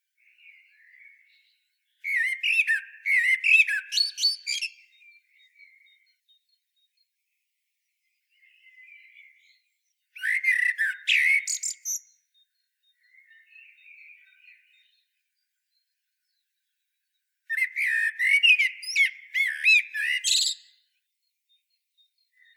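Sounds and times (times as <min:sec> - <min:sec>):
Eurasian blackbird singing: 0:00.2 - 0:07.0, 0:08.0 - 0:16.8, 0:17.5 - 0:20.9, 0:21.5 - 0:22.5.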